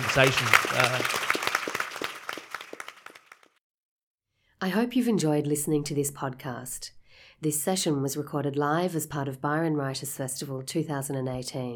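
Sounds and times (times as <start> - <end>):
audience applause for a panel: 0.0 - 3.5
speech: 0.2 - 1.2, 4.6 - 11.7.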